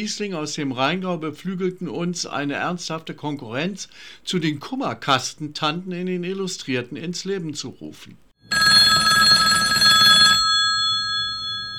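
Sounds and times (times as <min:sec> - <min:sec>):
speech: 0:00.0 - 0:08.8
telephone bell ringing with incoming call: 0:08.5 - 0:11.7.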